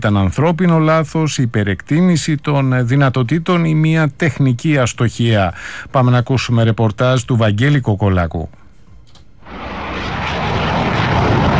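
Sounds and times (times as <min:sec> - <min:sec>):
speech: 0:00.0 - 0:08.6
Hellenic Air Force F-4 Phantom fighter jet flying over Florennes, Belgium: 0:09.4 - 0:11.5.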